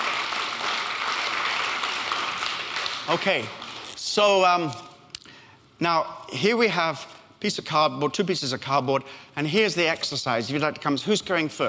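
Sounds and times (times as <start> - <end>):
round of applause: 0.0 - 3.8
speech: 3.1 - 3.6, 4.2 - 4.9, 5.8 - 11.6.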